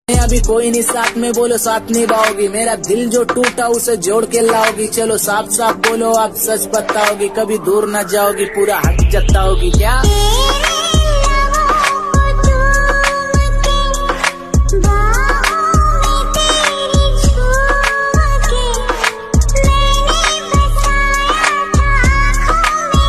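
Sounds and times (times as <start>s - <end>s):
trending romantic song ringtone: 0.1s - 23.0s.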